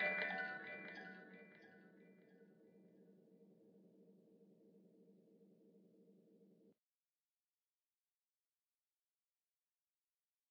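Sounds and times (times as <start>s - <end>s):
horror music box melody: 0.0s - 2.0s.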